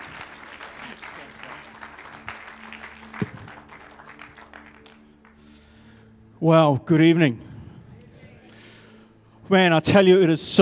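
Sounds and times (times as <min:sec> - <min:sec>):
audience at a church gathering applauding a speaker: 0:00.0 - 0:05.4
speech: 0:06.4 - 0:07.5, 0:09.5 - 0:10.6.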